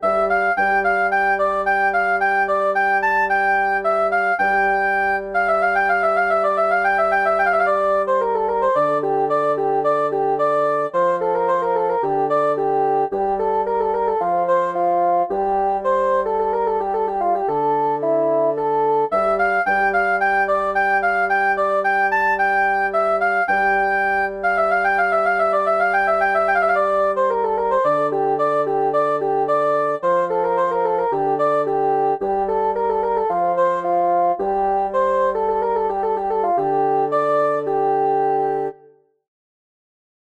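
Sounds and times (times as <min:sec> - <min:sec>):
bassoon: 0:00.0 - 0:38.9.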